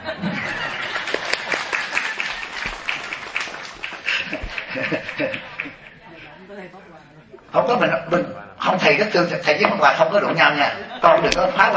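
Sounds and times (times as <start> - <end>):
people chuckling: 0.0 - 6.3, 10.6 - 11.7
audience clapping at a Vietnamese gathering: 0.5 - 6.0
chatter: 3.7 - 11.7
speech: 7.6 - 11.7.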